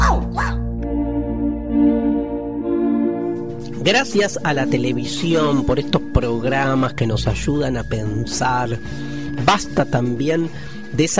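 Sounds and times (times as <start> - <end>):
cartoon detective dog yipping bark: 0.0 - 0.6
steady sustained harmonic tone: 0.8 - 9.2
speech: 3.9 - 11.1.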